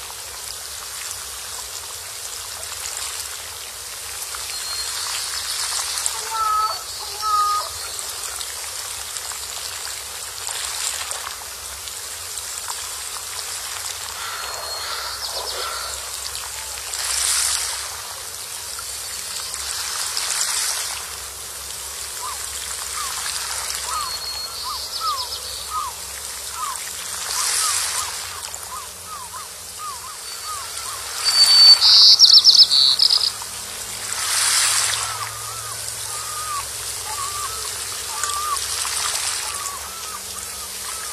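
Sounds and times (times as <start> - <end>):
trickling water-like hiss: 0.0 - 41.1
wild ducks and small birds calling: 4.6 - 8.4, 14.0 - 18.2, 22.0 - 33.6, 34.2 - 41.1.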